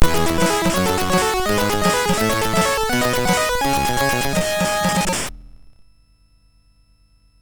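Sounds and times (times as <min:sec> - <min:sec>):
chiptune music on SID MOS6581R2 chip: 0:00.0 - 0:05.3.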